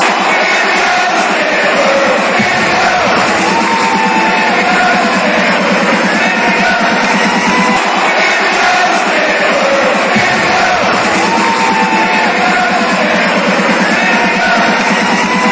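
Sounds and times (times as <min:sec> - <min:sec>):
fans chanting: 0:00.0 - 0:15.5.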